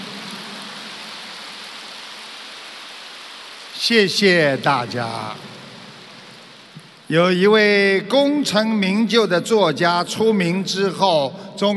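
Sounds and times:
audience applause: 0.0s - 6.6s
speech: 3.8s - 5.5s, 7.1s - 11.7s.

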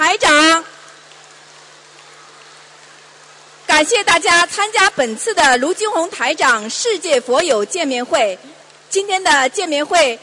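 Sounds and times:
audience applause: 1.0s - 3.7s
speech: 3.8s - 10.2s.

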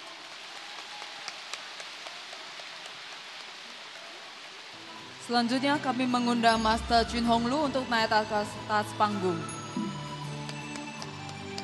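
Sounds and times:
audience applause: 0.0s - 4.8s, 10.2s - 11.6s
speech: 5.3s - 10.0s.

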